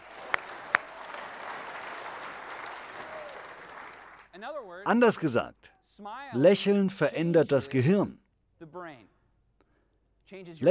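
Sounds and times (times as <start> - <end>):
audience applause: 0.0 - 4.3
speech: 4.4 - 9.2, 10.3 - 10.6.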